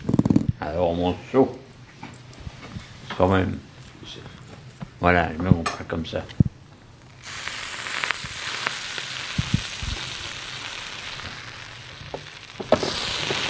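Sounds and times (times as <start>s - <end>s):
speech: 0.7s - 1.6s, 3.2s - 4.3s, 5.0s - 6.4s
small pops and crackles: 6.3s - 13.4s
croque-monsieur sandwiches sizzling in a pan: 7.0s - 13.4s.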